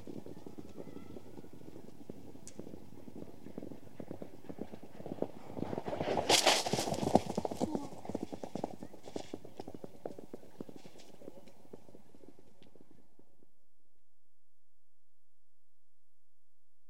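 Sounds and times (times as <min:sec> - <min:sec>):
point-to-point racing horses passing over a jump: 0:00.0 - 0:13.4.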